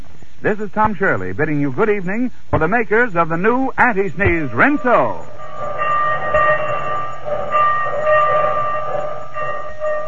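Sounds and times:
speech: 0:00.4 - 0:05.3
train rumbling and chugging: 0:02.6 - 0:10.0.

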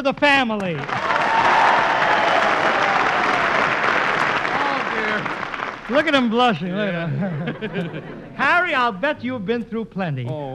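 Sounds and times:
speech: 0:00.0 - 0:01.1, 0:05.9 - 0:10.5
studio audience applause: 0:00.8 - 0:06.6
laughter: 0:05.9 - 0:08.9.

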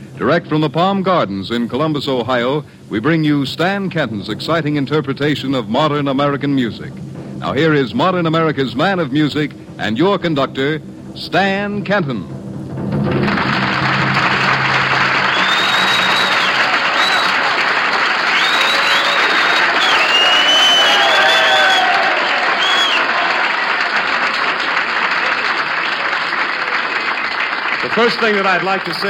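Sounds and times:
speech: 0:00.2 - 0:12.4, 0:28.0 - 0:29.0
audience applause: 0:13.0 - 0:29.0.

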